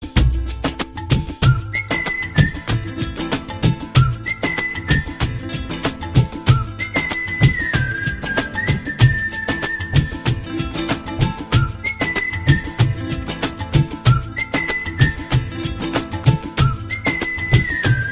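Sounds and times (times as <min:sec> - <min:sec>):
whistle: 0:01.4 - 0:18.0.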